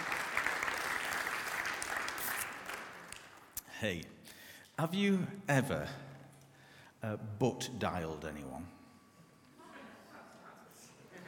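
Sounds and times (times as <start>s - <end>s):
round of applause: 0.0s - 3.6s
speech: 3.8s - 4.2s, 4.8s - 6.0s, 7.0s - 8.8s.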